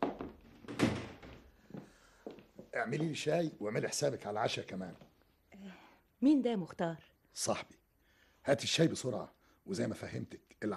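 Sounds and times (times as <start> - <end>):
door thumps and knocks as a visitor is let into a home: 0.0 - 1.5
speech: 2.8 - 5.1, 6.2 - 7.8, 8.4 - 10.7.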